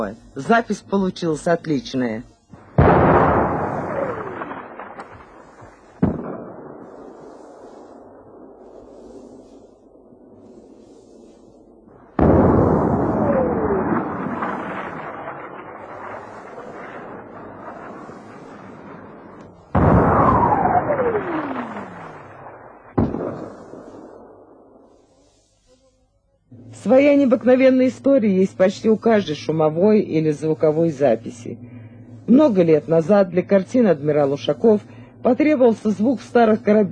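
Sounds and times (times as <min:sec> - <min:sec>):
speech: 0:00.0 - 0:02.3, 0:27.4 - 0:31.7, 0:32.3 - 0:36.9
artillery fire: 0:02.5 - 0:25.5
whistling shells exploding: 0:02.5 - 0:25.6.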